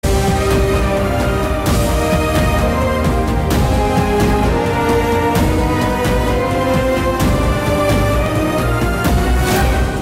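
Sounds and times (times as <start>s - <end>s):
trailer background music: 0.0s - 10.0s.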